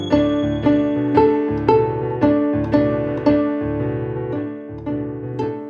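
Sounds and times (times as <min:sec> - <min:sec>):
blues played on violin: 0:00.1 - 0:05.6.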